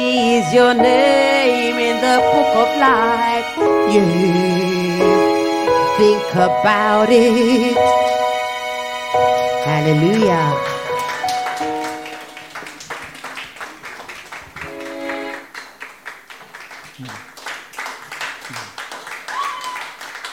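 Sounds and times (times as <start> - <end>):
speech: 0.4 - 5.3, 6.0 - 8.2, 9.1 - 10.8
audience clapping: 9.2 - 20.3.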